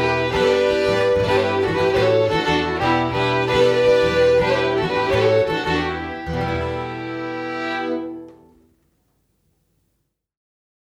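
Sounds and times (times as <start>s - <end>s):
polska dance tune: 0.0s - 8.6s.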